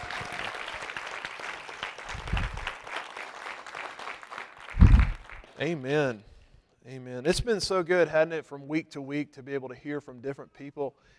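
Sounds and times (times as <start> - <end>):
audience applause: 0.0 - 5.6
low thuds: 4.8 - 5.2
speech: 5.6 - 11.1.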